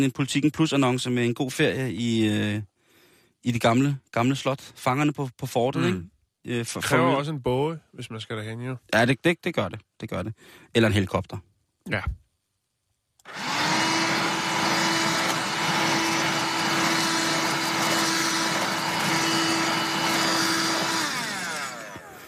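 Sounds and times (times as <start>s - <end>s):
speech: 0.0s - 2.7s, 3.4s - 12.2s
handheld vacuum cleaner running: 13.3s - 22.2s.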